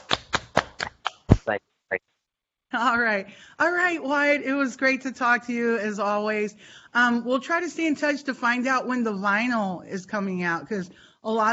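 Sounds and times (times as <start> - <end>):
hand clap: 0.0 - 1.5
speech: 1.5 - 2.1, 2.7 - 11.5.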